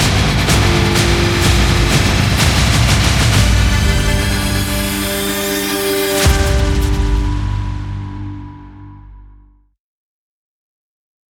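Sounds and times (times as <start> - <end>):
intense battle trailer music: 0.0 - 9.6.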